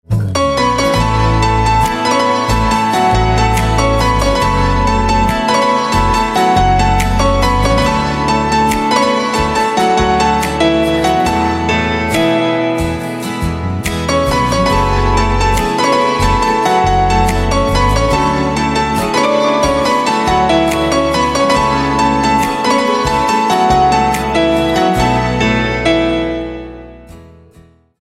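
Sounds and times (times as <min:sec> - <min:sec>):
instrumental piano ringtone: 0:00.4 - 0:27.5.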